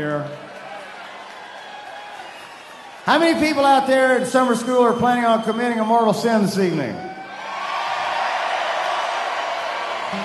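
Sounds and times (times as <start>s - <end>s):
speech: 0.0s - 0.5s, 3.1s - 7.1s
crowd cheering and whooping: 0.5s - 3.2s, 6.9s - 10.2s.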